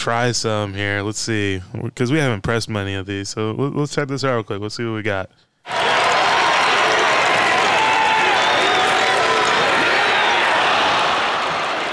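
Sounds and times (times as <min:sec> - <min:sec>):
speech: 0:00.0 - 0:05.8
applause: 0:05.7 - 0:11.9
crowd cheering at a basketball game: 0:05.7 - 0:11.9
scattered whoops: 0:05.7 - 0:11.9.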